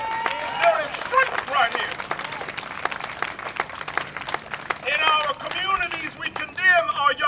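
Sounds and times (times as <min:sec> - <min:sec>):
crowd applauding: 0:00.0 - 0:07.1.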